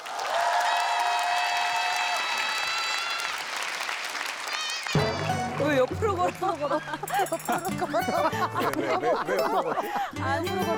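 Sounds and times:
audience applause: 0.0 - 7.4
laughter: 5.0 - 10.7
speech: 5.8 - 10.7.

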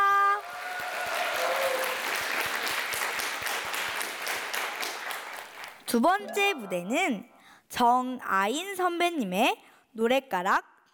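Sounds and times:
audience applause: 0.4 - 5.8
speech: 5.9 - 10.9.

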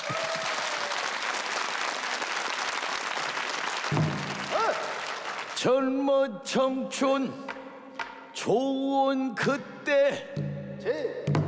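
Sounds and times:
audience applause: 0.0 - 5.7
speech: 5.6 - 7.6, 8.4 - 11.2.

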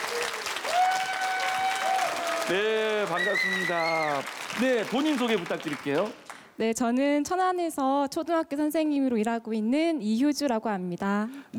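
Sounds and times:
audience applause welcoming a woman participant at a Korean drum lesson: 0.0 - 6.5
speech: 2.5 - 11.5.

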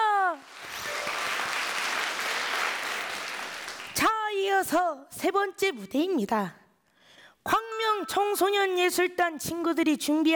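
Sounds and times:
audience applause after a performance: 0.4 - 4.1
speech: 4.6 - 6.6, 7.4 - 10.3.

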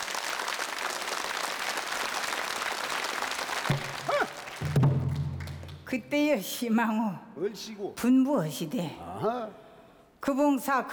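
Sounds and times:
audience applause: 0.0 - 5.8
speech: 5.9 - 9.6, 10.2 - 10.9.

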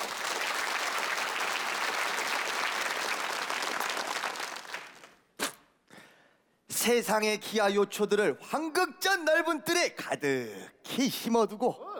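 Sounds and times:
crowd applauding: 0.0 - 5.2
speech: 6.8 - 11.9.

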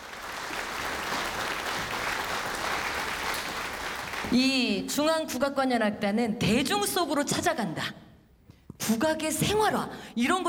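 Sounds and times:
audience applause: 0.0 - 4.4
speech: 4.3 - 8.0, 8.9 - 10.4.

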